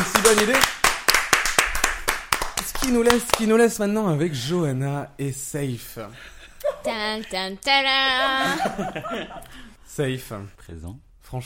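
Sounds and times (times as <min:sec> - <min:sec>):
clapping: 0:00.0 - 0:03.5
speech: 0:00.3 - 0:00.8, 0:02.8 - 0:11.4
laughter: 0:08.2 - 0:09.8.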